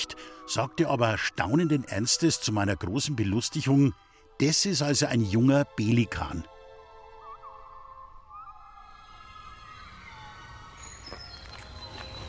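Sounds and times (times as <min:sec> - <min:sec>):
speech: 0:00.0 - 0:06.5
blue tit singing: 0:07.2 - 0:12.2.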